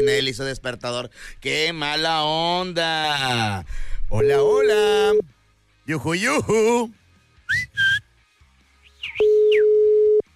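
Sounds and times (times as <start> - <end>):
speech: 0.0 - 8.0
short whistled calls: 7.5 - 8.1, 8.8 - 9.6.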